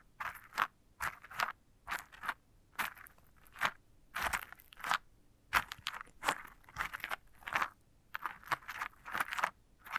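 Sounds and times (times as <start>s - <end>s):
dry crunching and scraping on a sunflower head: 0.2s - 9.9s.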